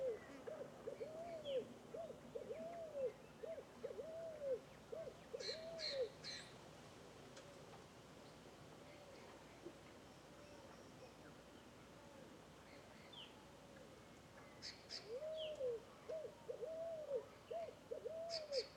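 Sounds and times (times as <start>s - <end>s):
scaled doves calling together with arched cooing notes: 0.0s - 6.2s, 15.0s - 18.7s.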